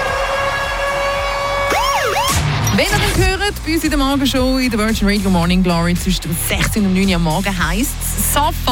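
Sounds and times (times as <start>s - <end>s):
radio ticket-alarm siren jingle: 0.2s - 3.0s
speech: 2.8s - 8.7s.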